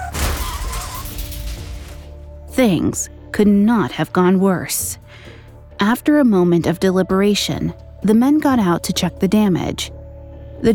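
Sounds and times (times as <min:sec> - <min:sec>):
car smashing into the back of another car: 0:00.0 - 0:02.3
speech: 0:02.6 - 0:10.0, 0:10.6 - 0:10.7.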